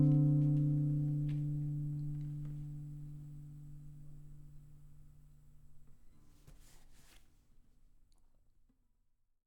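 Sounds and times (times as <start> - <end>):
blues music: 0.0 - 2.5.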